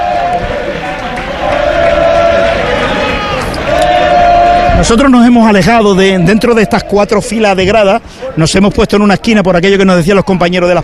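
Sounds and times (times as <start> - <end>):
Recre football fans chanting in stadium stands: 0.0 - 7.4
speech: 4.8 - 10.8.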